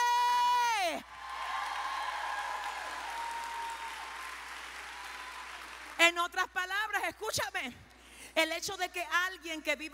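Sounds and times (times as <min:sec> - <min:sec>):
loud audience applause: 0:01.1 - 0:06.0
speech: 0:06.1 - 0:09.9.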